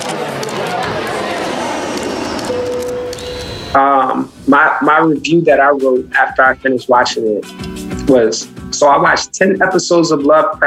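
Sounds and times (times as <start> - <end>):
crowd chatter: 0.0 - 4.3
speech: 3.7 - 10.6.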